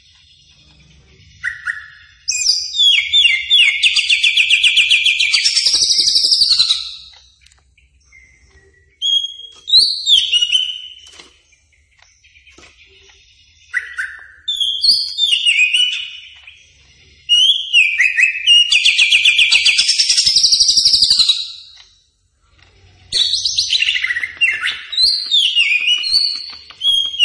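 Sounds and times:
greater green leafbird song: 0:00.0 - 0:27.2.

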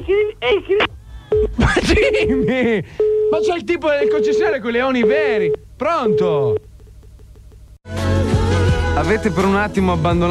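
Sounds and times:
speech: 0:00.0 - 0:06.7, 0:09.0 - 0:10.2
voice imitating a telephone line tone after hang-up: 0:03.3 - 0:06.7.

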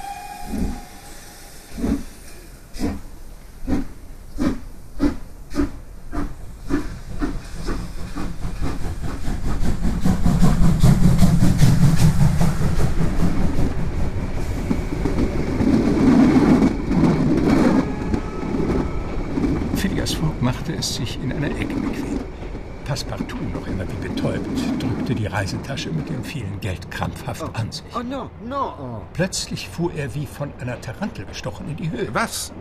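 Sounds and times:
steam train to Dover pulling away: 0:00.0 - 0:26.0
speech: 0:25.1 - 0:32.6.

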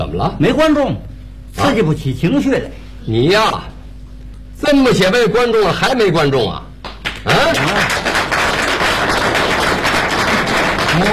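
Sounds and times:
speech: 0:00.0 - 0:03.7, 0:04.6 - 0:06.6, 0:07.2 - 0:08.1, 0:11.0 - 0:11.1
audience applause: 0:07.0 - 0:11.1.

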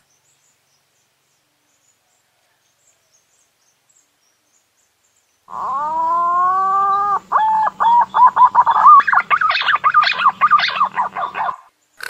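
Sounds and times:
green pigeon whistled call sequence: 0:05.5 - 0:11.7.

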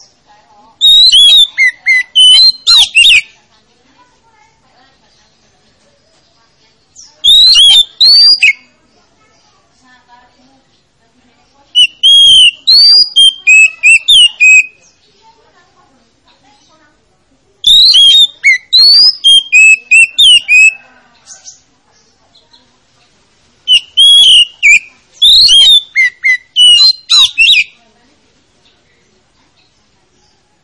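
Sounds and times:
Oriental magpie-robin singing: 0:00.0 - 0:03.5, 0:06.1 - 0:09.5, 0:10.6 - 0:15.4, 0:17.6 - 0:22.7, 0:23.6 - 0:27.8.

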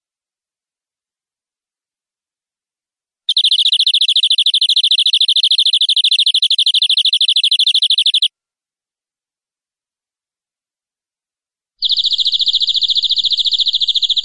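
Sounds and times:
canary singing: 0:03.3 - 0:08.3, 0:11.8 - 0:14.2.

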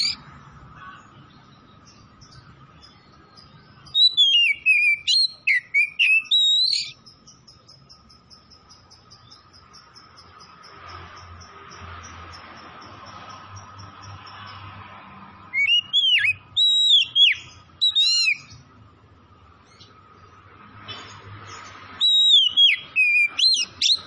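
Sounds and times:
Oriental magpie-robin whistling: 0:03.8 - 0:07.7, 0:15.5 - 0:18.6, 0:22.0 - 0:24.0.

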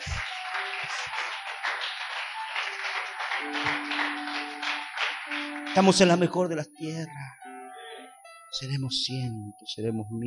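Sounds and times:
audience applauding: 0:00.0 - 0:06.4
speech: 0:03.4 - 0:04.1, 0:05.8 - 0:07.4, 0:08.5 - 0:10.2.

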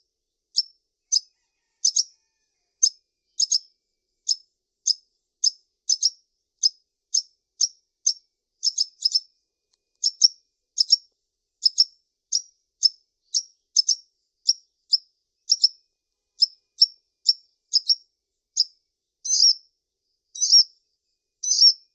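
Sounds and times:
brown-throated sunbird repeating a high sharp chip: 0:03.4 - 0:09.3, 0:10.0 - 0:15.8, 0:16.4 - 0:18.0, 0:21.4 - 0:21.8.

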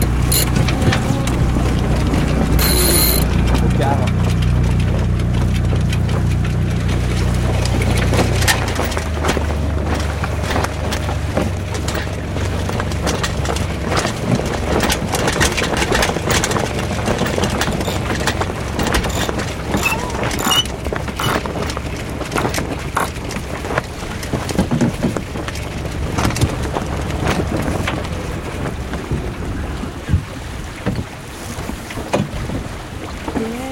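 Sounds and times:
clicks and knocks: 0:00.0 - 0:01.0, 0:02.6 - 0:03.2, 0:14.8 - 0:21.7, 0:22.4 - 0:23.4
sailboat winch ratcheting as the mainsail is hoisted: 0:00.0 - 0:03.7, 0:14.6 - 0:23.4
sailing boat's engine idling near Cap Nègre: 0:00.0 - 0:30.7
gusting wind: 0:05.9 - 0:33.3.

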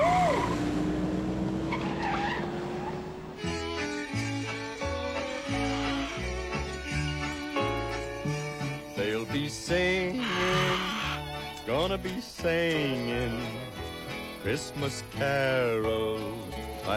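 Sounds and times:
car started, engine revving: 0:00.0 - 0:07.8
tires screeching and skidding: 0:00.0 - 0:15.5
speech: 0:11.9 - 0:13.6, 0:14.4 - 0:16.9.

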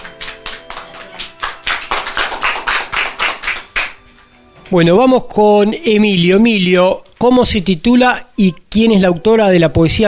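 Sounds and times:
small group applauding a reader after a poetry reading: 0:00.0 - 0:04.7
speech: 0:04.7 - 0:10.0.

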